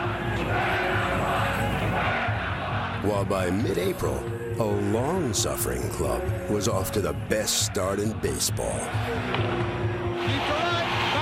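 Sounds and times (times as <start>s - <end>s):
Montreal Expos baseball fans cheering: 0.0s - 3.0s, 8.6s - 11.2s
speech: 3.0s - 10.6s.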